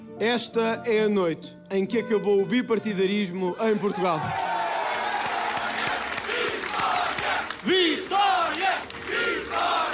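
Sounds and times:
speech: 0.2 - 4.5
large crowd cheering in celebration: 3.8 - 9.9
scattered clapping: 4.6 - 9.9.

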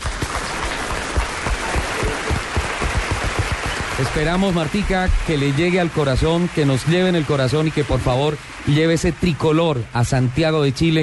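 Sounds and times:
strong applause: 0.0 - 11.0
speech: 4.0 - 11.0.

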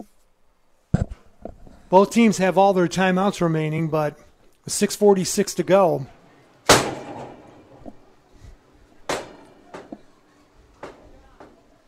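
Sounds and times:
speech: 1.9 - 6.2
door slamming in gusty wind at a high school football game: 6.7 - 7.9
knocks and rattles: 6.7 - 8.1, 9.0 - 11.7.

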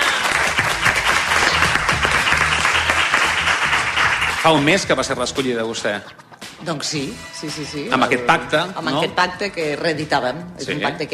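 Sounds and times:
audience applause: 0.0 - 4.8
speech: 4.4 - 11.1.

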